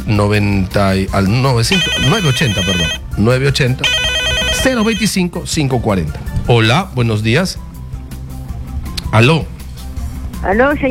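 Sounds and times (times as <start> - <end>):
speech: 0.1 - 7.7, 9.1 - 9.5, 10.4 - 10.8
electronic phone ringtone signalling an incoming call: 1.7 - 3.0, 3.8 - 5.2
melodic voice: 1.7 - 3.0, 3.8 - 5.1.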